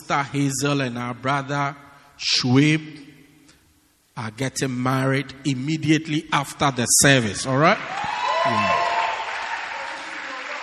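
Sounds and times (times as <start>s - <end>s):
speech: 0.1s - 3.1s, 4.2s - 8.9s
audience clapping hands: 7.8s - 10.6s.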